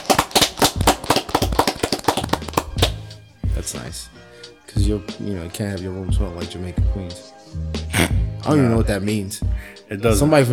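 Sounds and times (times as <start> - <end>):
round of applause: 0.0 - 3.0
speech: 3.7 - 10.5.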